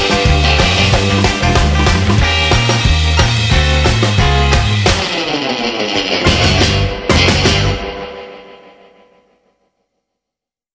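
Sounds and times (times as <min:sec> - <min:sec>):
surf: 0:00.0 - 0:08.5.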